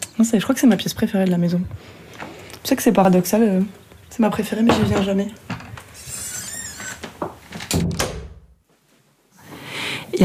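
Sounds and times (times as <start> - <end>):
speech: 0.2 - 5.6
room door creaking on its hinges and shutting: 4.7 - 8.6.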